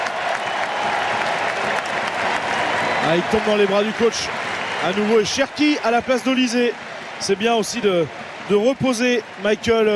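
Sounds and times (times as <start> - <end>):
stadium crowd clapping for a substituted football player: 0.0 - 9.9
speech: 3.1 - 9.9.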